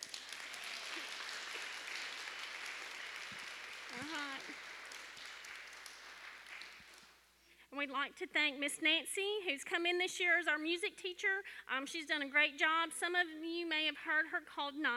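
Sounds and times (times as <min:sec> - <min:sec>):
audience applause: 0:00.0 - 0:07.2
speech: 0:07.8 - 0:14.9.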